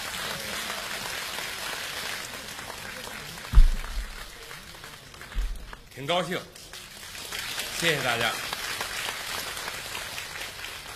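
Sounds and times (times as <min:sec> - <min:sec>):
audience applause welcoming a guest at a comedy and performance event: 0:00.0 - 0:05.9, 0:07.0 - 0:10.9
brief thump: 0:03.5 - 0:04.4, 0:05.4 - 0:05.8
speech: 0:06.0 - 0:06.6, 0:07.8 - 0:08.4.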